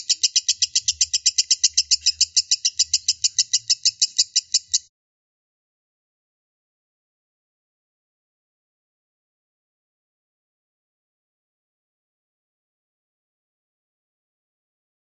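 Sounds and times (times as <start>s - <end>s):
lovebird chirping: 0.0s - 4.9s.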